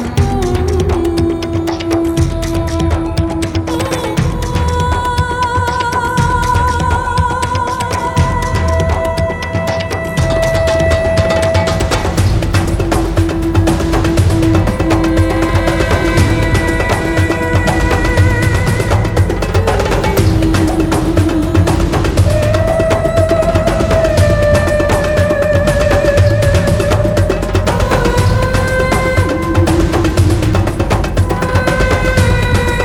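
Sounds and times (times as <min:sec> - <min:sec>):
drums: 0:00.0 - 0:32.8.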